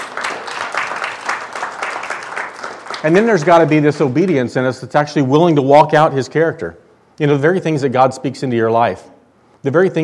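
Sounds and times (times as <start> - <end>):
congregation applauding during a church sermon: 0.0 - 4.6
speech: 3.0 - 10.0.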